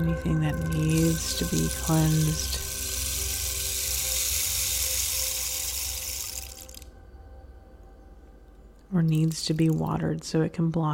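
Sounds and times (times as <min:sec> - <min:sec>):
speech: 0:00.0 - 0:02.7, 0:09.0 - 0:10.9
rain falling: 0:00.6 - 0:06.8.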